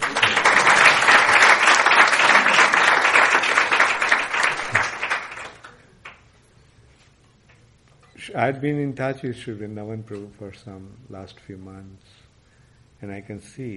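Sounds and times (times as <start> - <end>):
audience applause: 0.0 - 5.8
speech: 8.4 - 12.2, 13.0 - 13.7.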